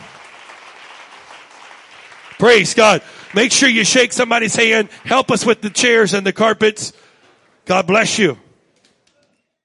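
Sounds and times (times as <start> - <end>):
audience clapping hands: 0.0 - 6.2
speech: 2.4 - 7.0, 7.7 - 8.4.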